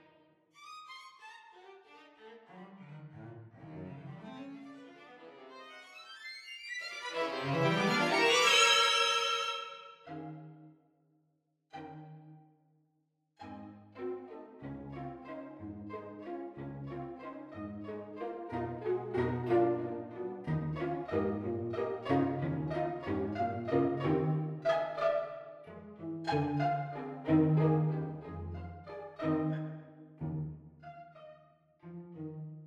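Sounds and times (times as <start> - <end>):
string quartet playing pizzicato: 2.0 - 4.4, 7.1 - 10.5, 13.4 - 31.0, 31.8 - 32.6.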